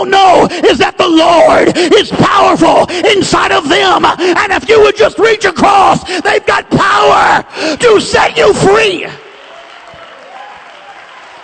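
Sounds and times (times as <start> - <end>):
speech: 0.0 - 9.3
audience clapping hands: 9.0 - 11.4.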